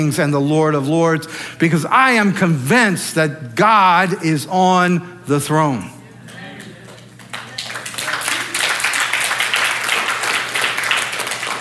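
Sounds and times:
speech: 0.0 - 6.0
audience clapping: 6.6 - 11.5.

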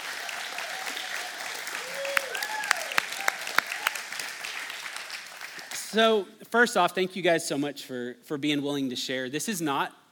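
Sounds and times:
audience applause welcoming two guests onto a stage: 0.0 - 6.0
speech: 5.9 - 10.0.

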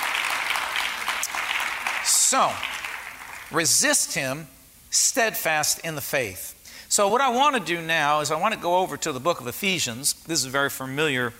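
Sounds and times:
audience clapping: 0.0 - 3.6
speech: 2.3 - 2.8, 3.5 - 11.3.

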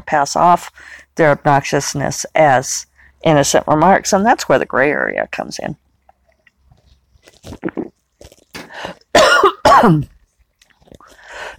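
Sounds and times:
speech: 0.1 - 5.8, 9.7 - 10.2
person coughing after choking on lemon water: 8.6 - 10.1.

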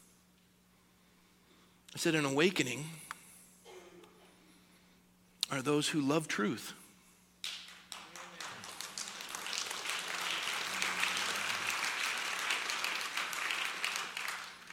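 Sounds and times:
speech: 2.0 - 3.0, 5.5 - 6.8
audience clapping: 7.4 - 14.7.

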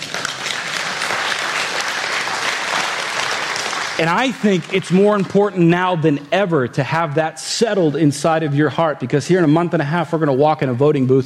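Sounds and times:
audience clapping: 0.0 - 5.9
speech: 4.0 - 11.2.

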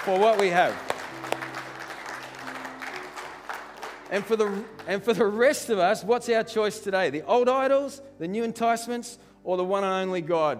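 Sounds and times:
speech: 0.0 - 1.4, 4.1 - 10.5
audience clapping in praise: 0.0 - 5.4.

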